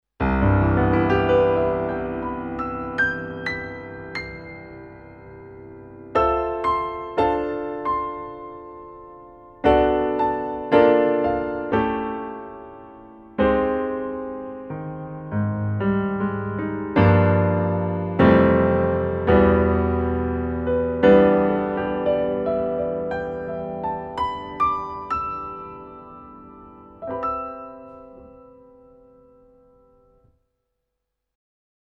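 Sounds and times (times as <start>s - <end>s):
Korg PA4X concert grand piano: 0.0s - 30.4s.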